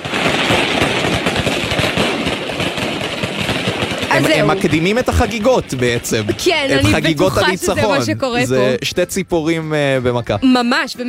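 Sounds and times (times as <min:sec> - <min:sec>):
fireworks exploding outside a window: 0:00.0 - 0:08.6
laughter: 0:04.1 - 0:09.0, 0:09.9 - 0:10.7
speech: 0:04.2 - 0:11.0.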